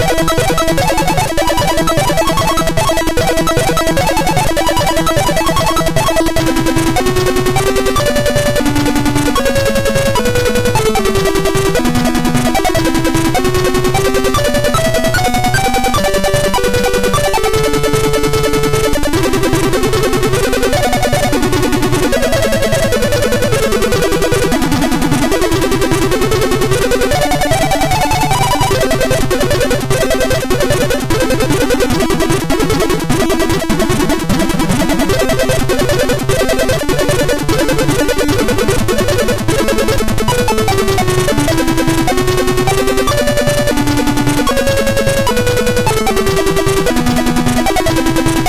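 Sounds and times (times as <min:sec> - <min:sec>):
chiptune intro on a MOS6581R4 SID chip: 0:00.0 - 0:48.4.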